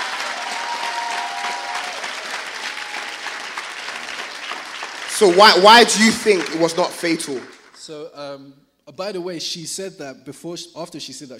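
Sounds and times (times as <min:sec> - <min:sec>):
audience clapping: 0:00.0 - 0:08.0
speech: 0:05.2 - 0:11.3.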